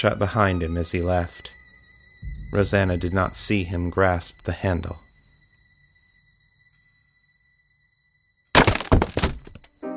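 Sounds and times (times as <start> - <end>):
speech: 0.0 - 1.6, 2.5 - 5.0
violin breaking with a crash: 8.6 - 9.7.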